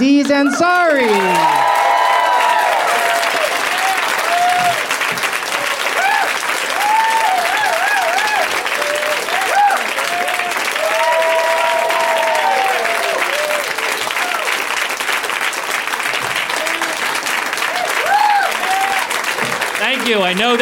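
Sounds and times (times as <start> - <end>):
large audience applauding: 0.0 - 20.6
speech: 0.3 - 1.6, 20.1 - 20.6
cheers and whoops: 0.3 - 14.7, 16.5 - 19.3.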